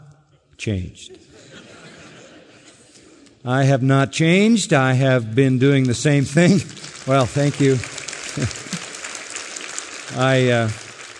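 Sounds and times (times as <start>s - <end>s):
speech: 0.6s - 1.4s, 3.4s - 8.7s, 10.1s - 10.8s
laughter: 1.1s - 3.3s, 7.1s - 9.0s
audience applause: 6.0s - 11.1s.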